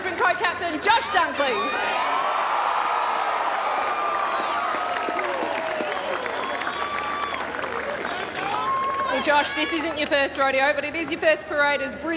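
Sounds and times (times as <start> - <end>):
crowd shouts and whoops: 1.0 - 10.0
parade crowd clapping for the Fremantle captain: 2.2 - 11.3
speech: 9.4 - 12.1.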